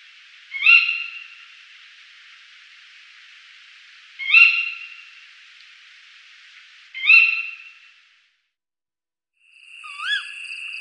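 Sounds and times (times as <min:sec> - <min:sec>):
tawny owl hooting: 0:00.5 - 0:01.4, 0:04.2 - 0:05.1, 0:07.0 - 0:07.7, 0:09.8 - 0:10.4.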